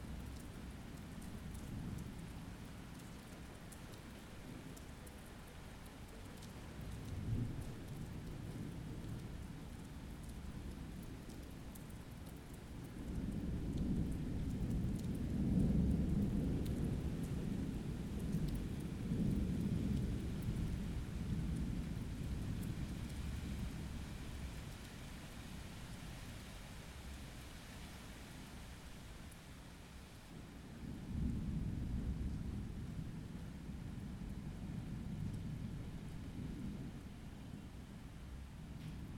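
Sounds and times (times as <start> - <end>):
rain: 0.0 - 39.1
thunder: 13.4 - 22.4.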